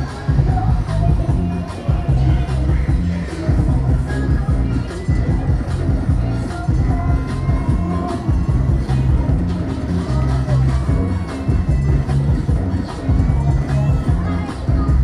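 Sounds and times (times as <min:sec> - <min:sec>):
ambient fairground noise in Phnom Penh Cambodia: 0:00.0 - 0:15.0.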